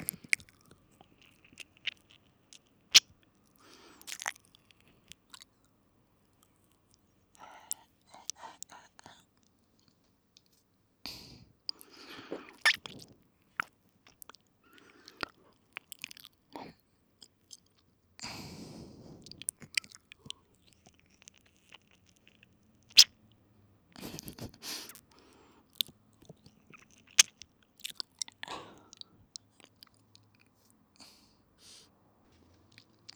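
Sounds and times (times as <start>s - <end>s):
ear licking sounds in right ear: 0.0s - 5.5s, 11.1s - 16.4s, 18.2s - 23.2s, 24.0s - 31.8s.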